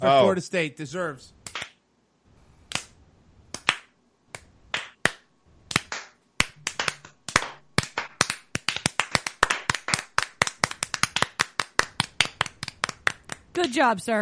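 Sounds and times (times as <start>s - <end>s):
speech: 0.0s - 1.4s, 13.6s - 14.2s
slow clap: 2.7s - 13.7s.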